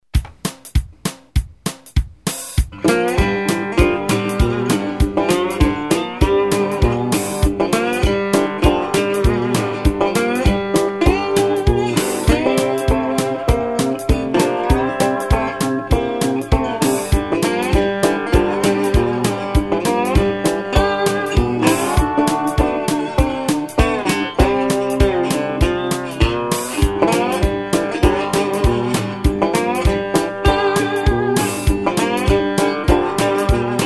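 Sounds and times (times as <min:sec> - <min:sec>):
blues shuffle: 0:00.0 - 0:33.8.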